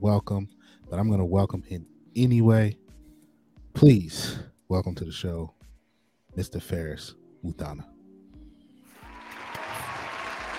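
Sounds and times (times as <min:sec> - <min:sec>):
speech: 0:00.0 - 0:02.8, 0:03.8 - 0:05.6, 0:06.4 - 0:08.0
applause clap track: 0:09.0 - 0:10.5.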